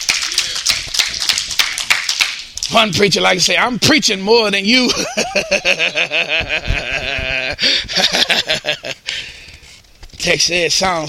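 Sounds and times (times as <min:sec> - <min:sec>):
audience hand clapping: 0:00.0 - 0:02.8
speech: 0:02.7 - 0:09.3, 0:10.2 - 0:11.0
laughter: 0:04.9 - 0:09.0.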